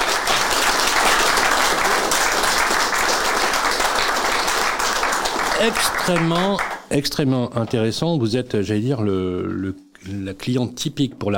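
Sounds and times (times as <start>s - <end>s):
audience applause: 0.0s - 6.9s
speech: 5.6s - 11.3s.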